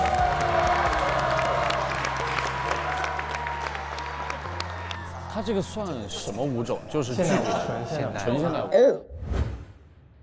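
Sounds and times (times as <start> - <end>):
crowd clapping: 0.0 - 5.8
faint cheering: 0.0 - 5.8
speech: 5.5 - 9.1
laughter: 7.0 - 8.6.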